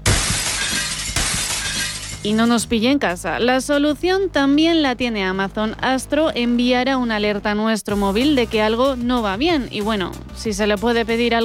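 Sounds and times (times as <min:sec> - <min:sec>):
glass window breaking: 0:00.0 - 0:02.6
speech: 0:02.2 - 0:11.4.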